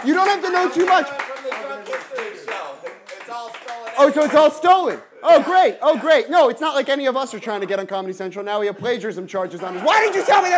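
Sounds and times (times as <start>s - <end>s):
speech: 0.0s - 1.2s, 4.0s - 10.5s
audience clapping: 0.0s - 4.7s
laughter: 9.4s - 10.5s.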